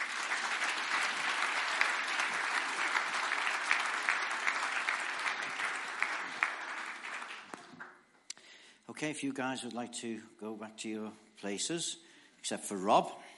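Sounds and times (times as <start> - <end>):
audience applause: 0.0 - 8.0
speech: 9.0 - 13.2.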